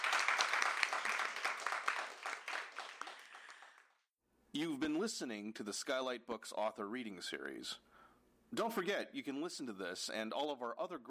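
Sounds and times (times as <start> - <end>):
audience round of applause: 0.0 - 4.0
speech: 4.6 - 7.9, 8.5 - 11.0.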